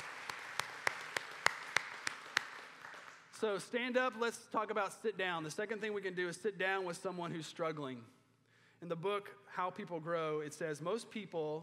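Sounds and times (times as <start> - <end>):
audience applause: 0.0 - 3.3
speech: 3.4 - 8.2, 8.8 - 11.6.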